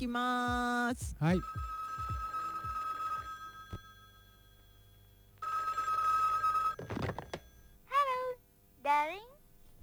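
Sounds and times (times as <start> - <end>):
speech: 0.0 - 1.7, 8.9 - 9.3
telephone bell ringing at the start of a song: 1.2 - 7.8.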